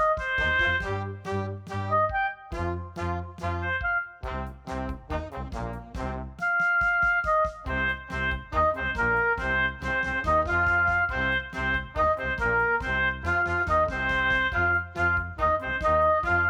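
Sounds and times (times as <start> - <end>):
loud hard rock blues oboe: 0.0 - 16.4.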